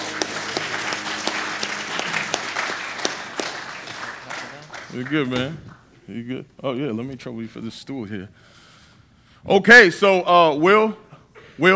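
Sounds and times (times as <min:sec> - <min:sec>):
audience hand clapping: 0:00.0 - 0:05.9
speech: 0:04.9 - 0:08.5, 0:09.4 - 0:11.0, 0:11.6 - 0:11.7.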